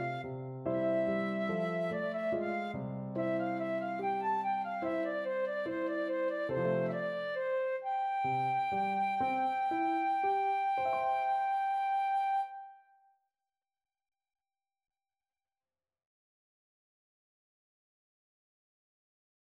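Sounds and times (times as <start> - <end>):
flute in karaoke music: 0.0 - 13.1.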